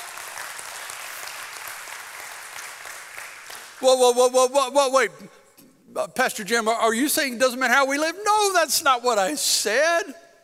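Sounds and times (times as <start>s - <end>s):
audience applause: 0.0s - 3.8s
speech: 3.8s - 5.4s, 6.0s - 10.2s.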